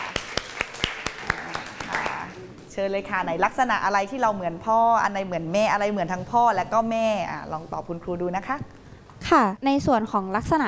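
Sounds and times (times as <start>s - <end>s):
classroom clapping for a student: 0.0s - 2.4s
speech: 2.8s - 10.6s.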